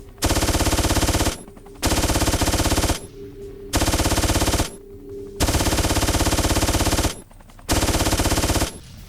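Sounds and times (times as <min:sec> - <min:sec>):
rapid machine gun fire in a video game: 0:00.2 - 0:03.1, 0:03.7 - 0:04.8, 0:05.4 - 0:09.0.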